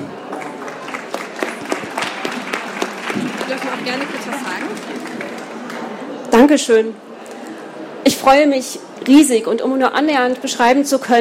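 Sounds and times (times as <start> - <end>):
audience applause: 0.0 - 6.2
speech: 3.5 - 5.3, 6.3 - 7.1, 8.2 - 11.1.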